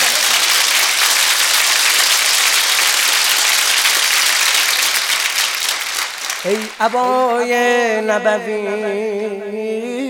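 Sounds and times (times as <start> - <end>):
audience clapping at a religious celebration night: 0.0 - 7.4
speech: 6.4 - 10.0.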